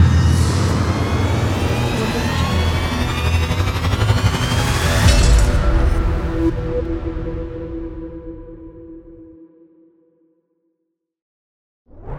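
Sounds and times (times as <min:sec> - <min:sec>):
techno ident logo jingle: 0:00.2 - 0:09.0.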